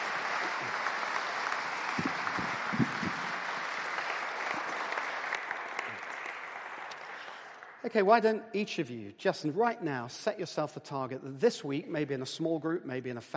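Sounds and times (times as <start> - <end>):
round of applause from audience: 0.0 - 8.1
speech: 7.9 - 13.3.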